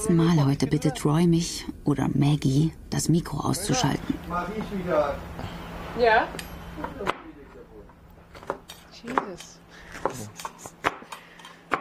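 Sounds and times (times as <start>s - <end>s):
speech: 0.0s - 7.1s, 9.0s - 10.5s
chopping food on a board: 10.0s - 11.7s.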